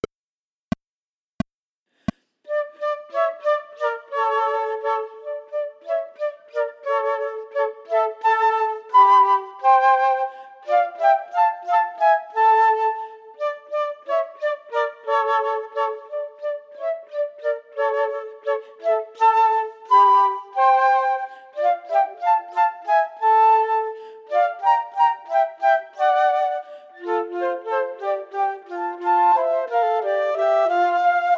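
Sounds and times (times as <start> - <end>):
chamber music for flutes without the first part: 2.5 - 31.3.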